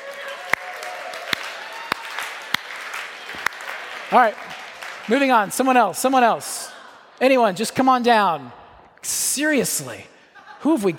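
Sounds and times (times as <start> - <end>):
audience slow clap: 0.0 - 5.7
speech: 4.1 - 10.9.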